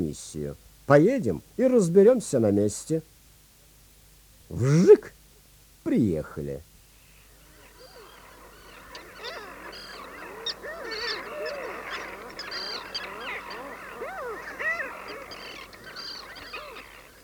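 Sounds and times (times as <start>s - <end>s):
speech: 0.0s - 3.1s, 4.5s - 5.2s, 5.8s - 6.7s
crowd of birds with goose-like honks and squawks: 7.3s - 17.2s.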